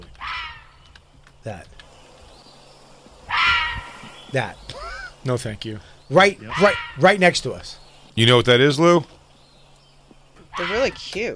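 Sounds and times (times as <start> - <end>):
fisher cat screaming: 0.2 - 0.8, 3.3 - 4.2, 6.4 - 7.2, 10.5 - 11.1
speech: 1.4 - 1.8, 4.3 - 9.2, 10.6 - 11.3.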